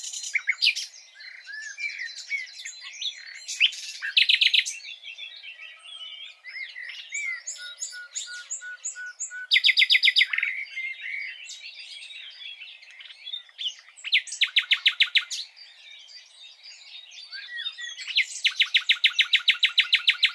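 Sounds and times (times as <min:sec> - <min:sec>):
nightingale-type song: 0:00.0 - 0:20.3.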